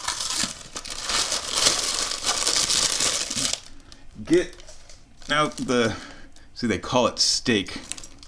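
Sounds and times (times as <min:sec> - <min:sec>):
cardboard box of frozen beef patties opened with crinkling and tearing: 0:00.0 - 0:03.9, 0:04.5 - 0:05.8, 0:07.8 - 0:08.2
speech: 0:04.2 - 0:04.6, 0:05.3 - 0:07.9.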